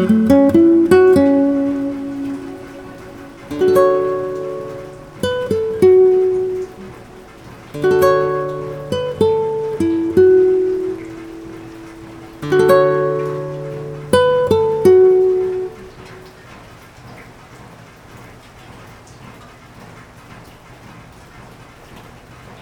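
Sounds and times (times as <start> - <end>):
melody: 0.0 - 16.0.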